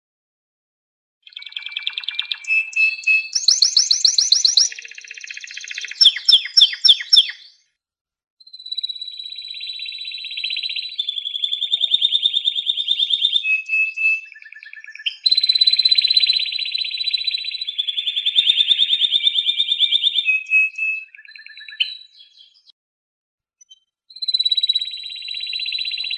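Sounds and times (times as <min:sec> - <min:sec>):
domestic canary singing: 0:01.3 - 0:07.6, 0:08.7 - 0:22.6.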